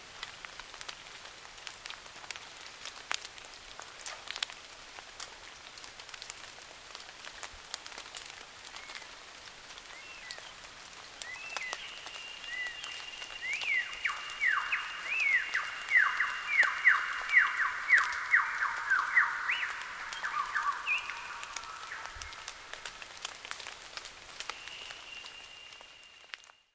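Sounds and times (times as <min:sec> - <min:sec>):
superb lyrebird singing: 0:11.2 - 0:23.0.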